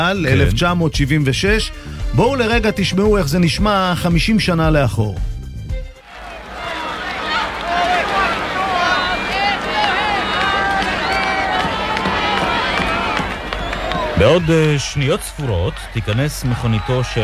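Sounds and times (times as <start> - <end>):
speech: 0.0 - 5.3, 14.2 - 17.2
large crowd clapping: 6.0 - 17.2.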